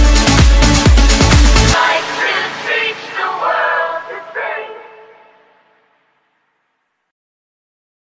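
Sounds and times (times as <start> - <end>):
drill team tryout jazz music: 0.0 - 5.6.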